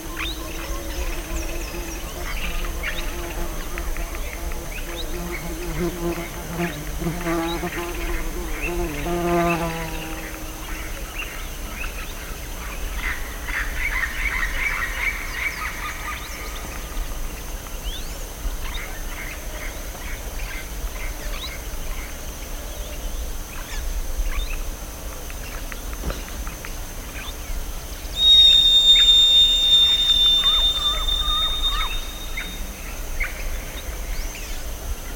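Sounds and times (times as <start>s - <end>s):
background hiss: 0.0s - 35.1s
bird calls: 28.2s - 33.3s
steady high whistling tone: 28.2s - 33.4s.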